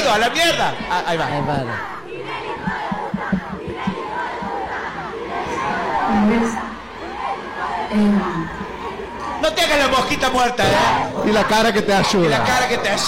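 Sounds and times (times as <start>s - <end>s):
large stadium crowd shouting together: 0.0s - 13.0s
speech: 0.1s - 2.0s, 6.1s - 6.6s, 7.9s - 8.5s, 9.4s - 13.0s.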